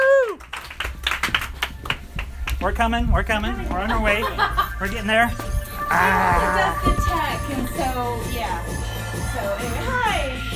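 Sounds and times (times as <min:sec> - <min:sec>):
audience applause welcoming an improv comedy group at the Comedy Loft: 0:00.0 - 0:02.9
speech: 0:02.6 - 0:10.4
laughter: 0:03.7 - 0:05.0
person calling out: 0:05.9 - 0:06.8.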